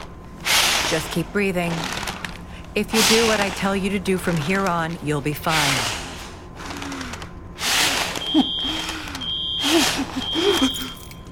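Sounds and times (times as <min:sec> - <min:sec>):
speech: 0:00.9 - 0:02.0, 0:02.8 - 0:06.0
smoke alarm beeping: 0:08.2 - 0:11.3.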